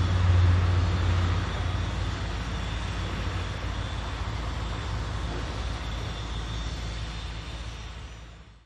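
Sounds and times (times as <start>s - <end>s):
construction works in an industrial city: 0.0s - 8.6s.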